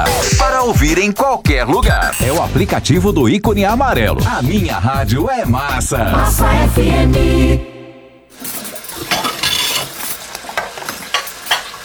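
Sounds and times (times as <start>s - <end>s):
speech: 0.6s - 7.7s
someone washing dishes: 8.3s - 11.8s.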